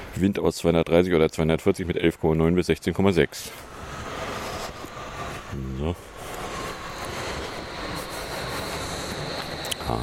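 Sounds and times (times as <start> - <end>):
speech: 0.2 - 3.7, 5.5 - 6.1, 9.9 - 10.0
train rolling past with rumbling wheels: 3.5 - 10.0
high-pitched train squeal: 3.6 - 10.0.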